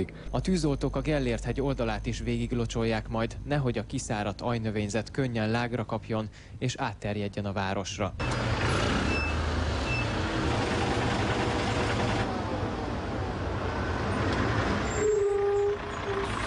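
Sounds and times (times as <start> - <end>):
heavy city traffic jam: 0.0 - 3.7, 8.2 - 16.4
speech: 0.0 - 8.6.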